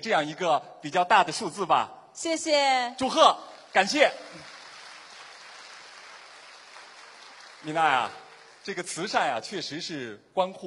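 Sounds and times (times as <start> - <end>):
speech: 0.0 - 4.5, 7.6 - 10.6
applause: 3.0 - 9.6.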